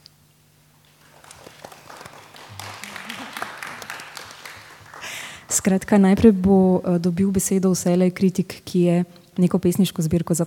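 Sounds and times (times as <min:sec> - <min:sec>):
audience applause: 0:01.0 - 0:05.4
speech: 0:05.6 - 0:10.4.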